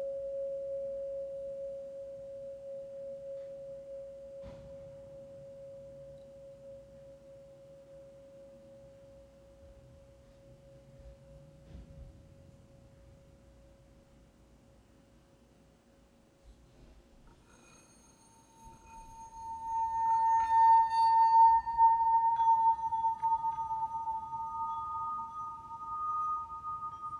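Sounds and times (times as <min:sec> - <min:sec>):
healing bowls ringing: 0:00.0 - 0:09.8, 0:17.4 - 0:27.1.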